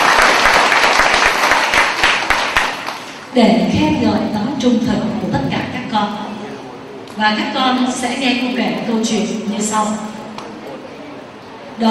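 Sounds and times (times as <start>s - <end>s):
loud round of applause from children: 0.0s - 3.2s
speech: 3.4s - 6.2s, 7.2s - 10.2s.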